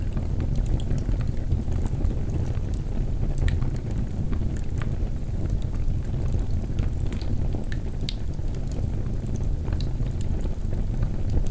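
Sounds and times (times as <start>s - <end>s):
campfire: 0.0s - 11.4s.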